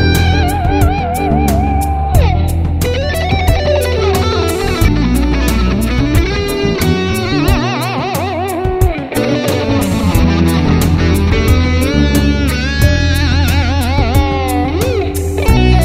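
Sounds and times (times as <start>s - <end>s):
smooth piano: 0.0s - 15.8s.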